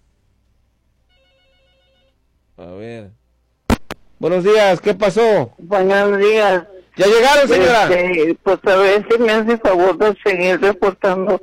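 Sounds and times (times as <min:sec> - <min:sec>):
telephone ringing with an incoming call: 0:01.1 - 0:02.2
speech: 0:02.6 - 0:03.2, 0:04.2 - 0:11.4.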